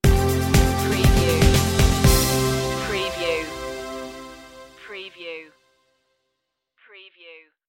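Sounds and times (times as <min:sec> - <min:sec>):
music stinger: 0:00.0 - 0:04.8.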